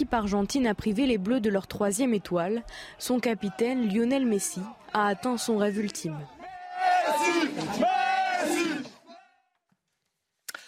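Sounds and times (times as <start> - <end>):
speech: 0.0 - 6.4, 7.2 - 7.9
Argentine fans celebrating, crowd cheering: 1.4 - 9.5.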